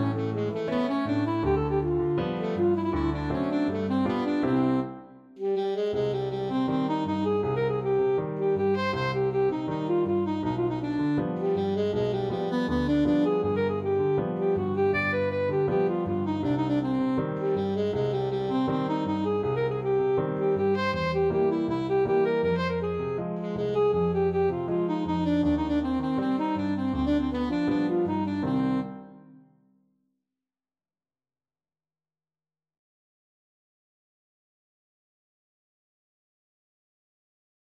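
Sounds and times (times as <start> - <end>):
tango: 0.0 - 29.4.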